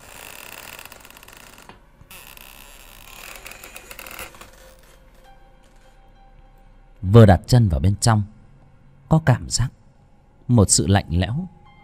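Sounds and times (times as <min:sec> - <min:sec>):
old door creaking open: 0:00.0 - 0:06.0
speech: 0:07.0 - 0:08.4, 0:09.1 - 0:09.8, 0:10.5 - 0:11.6.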